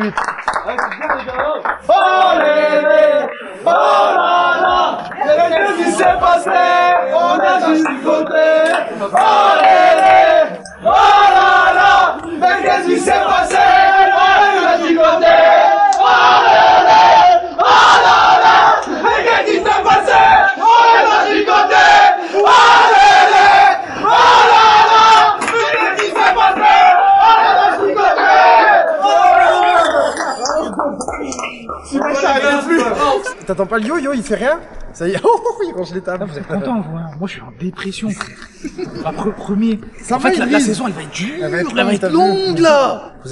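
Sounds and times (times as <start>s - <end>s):
laughter: 0.0s - 1.4s, 29.5s - 33.6s, 35.0s - 36.9s, 37.8s - 42.1s
speech: 0.0s - 1.4s, 33.6s - 43.2s
group applauding and cheering: 0.0s - 33.3s.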